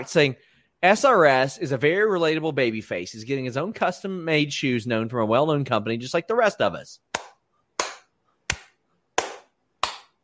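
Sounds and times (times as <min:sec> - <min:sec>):
speech: 0:00.0 - 0:07.2
hand clapping: 0:07.1 - 0:10.2.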